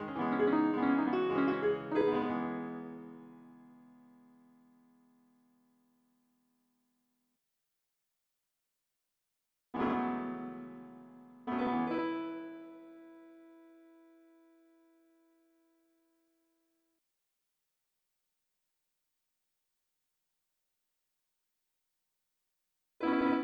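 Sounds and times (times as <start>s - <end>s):
piano: 0.0s - 5.1s, 9.8s - 15.6s, 23.0s - 23.4s.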